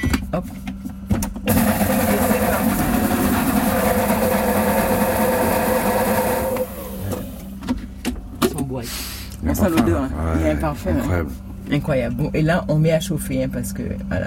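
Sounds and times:
speech: 0:00.0 - 0:00.8, 0:08.8 - 0:14.2
heating food processor blending: 0:01.5 - 0:07.6.

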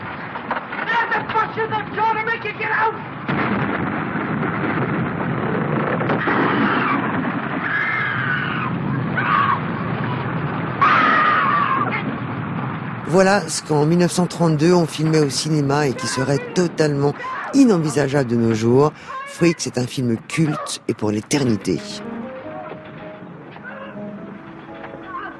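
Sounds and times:
thunderstorm rumbling in a film scene: 0:00.0 - 0:25.3
thunderstorm with steady heavy rain in a film scene: 0:00.0 - 0:25.3
speech: 0:01.6 - 0:03.9, 0:13.1 - 0:22.1
woman screaming in a film scene: 0:07.6 - 0:09.6, 0:10.8 - 0:12.0, 0:17.2 - 0:17.6, 0:19.0 - 0:19.5, 0:23.6 - 0:24.0.

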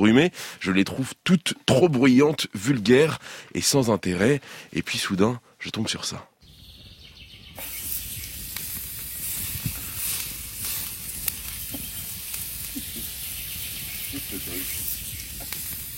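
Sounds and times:
speech: 0:00.0 - 0:06.3
meat sizzling over wood fire: 0:07.5 - 0:15.9.

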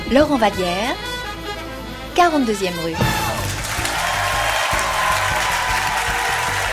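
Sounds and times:
speech: 0:00.1 - 0:01.1, 0:02.2 - 0:03.1
audience applause: 0:03.3 - 0:06.7.

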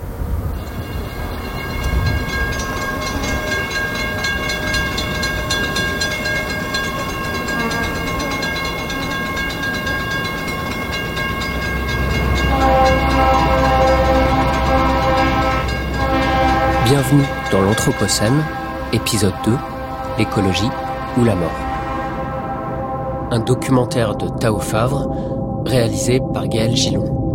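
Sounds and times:
train passing by: 0:00.0 - 0:26.5
speech: 0:17.8 - 0:21.7, 0:23.3 - 0:27.2.

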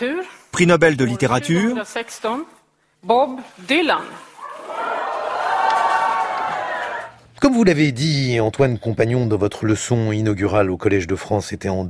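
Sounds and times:
speech: 0:00.0 - 0:04.3, 0:07.4 - 0:11.8
subdued applause from an audience at an award ceremony: 0:04.4 - 0:07.2.

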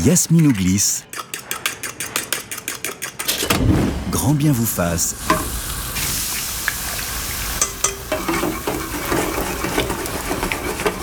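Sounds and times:
speech: 0:00.0 - 0:01.2, 0:03.6 - 0:05.6
utensil scraping and clinking in a pan: 0:00.0 - 0:03.3, 0:05.2 - 0:11.0
food frying in a pan: 0:05.1 - 0:11.0.

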